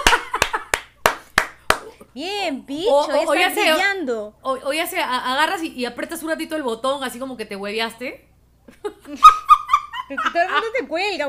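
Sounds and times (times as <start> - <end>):
sharp evenly spaced claps: 0.0 - 2.0
speech: 2.2 - 9.5, 10.1 - 11.2.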